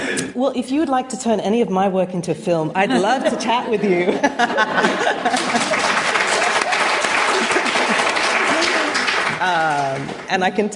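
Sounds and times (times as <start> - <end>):
speech: 0.4 - 5.8, 9.4 - 10.7
laughter: 2.9 - 9.2
audience applause at a talk on African women writers: 4.7 - 10.5.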